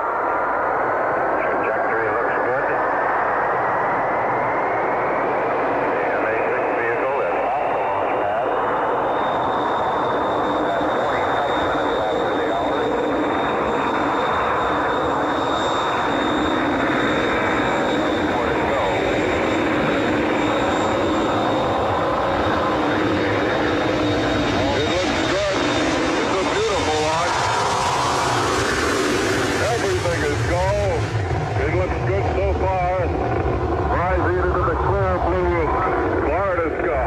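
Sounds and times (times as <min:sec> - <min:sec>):
Mercury-Atlas MA-6 rocket liftoff roar: 0:00.0 - 0:37.0
radio-like voices: 0:01.4 - 0:03.0, 0:05.9 - 0:08.7, 0:10.4 - 0:14.1, 0:16.0 - 0:28.0, 0:29.6 - 0:37.0.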